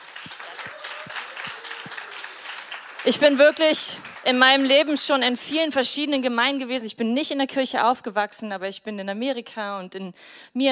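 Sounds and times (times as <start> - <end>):
audience applause: 0.0 - 5.1
speech: 0.2 - 0.5, 3.0 - 10.7.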